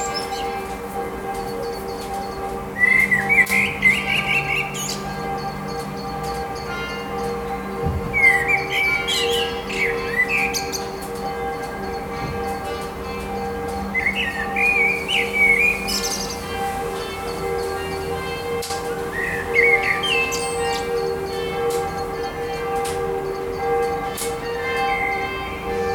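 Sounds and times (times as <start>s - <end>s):
blackbird singing: 0.0s - 0.6s, 1.6s - 7.1s, 7.8s - 12.6s, 13.9s - 16.5s, 19.1s - 21.1s, 24.9s - 25.3s
evening bells ringing: 0.0s - 25.9s.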